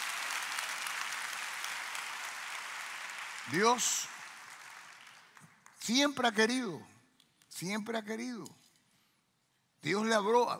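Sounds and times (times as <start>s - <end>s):
audience applause: 0.0s - 5.8s
speech: 3.4s - 4.2s, 5.8s - 6.9s, 7.5s - 8.6s, 9.8s - 10.5s.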